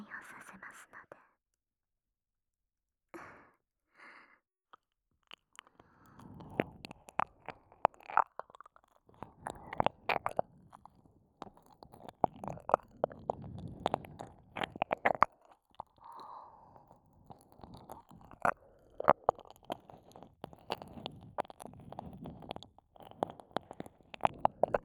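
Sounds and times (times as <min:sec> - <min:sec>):
ear licking sounds: 0:05.3 - 0:24.8.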